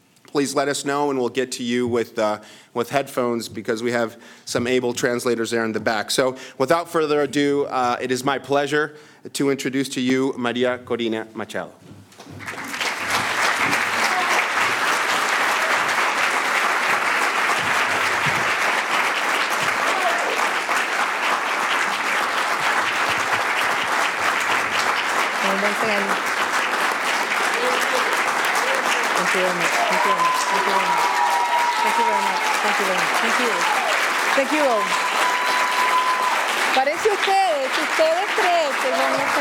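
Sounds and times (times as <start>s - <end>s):
speech: 0.4s - 12.0s
audience applause: 12.2s - 39.3s.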